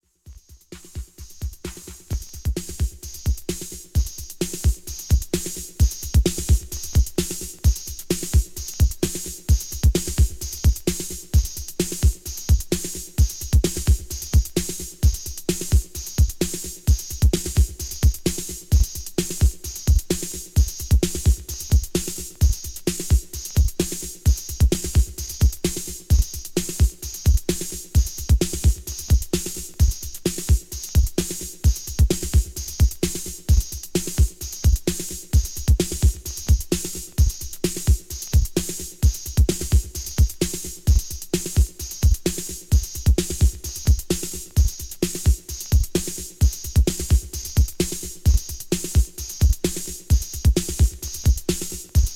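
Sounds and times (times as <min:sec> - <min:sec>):
scratching over a beat: 0:00.3 - 0:52.1.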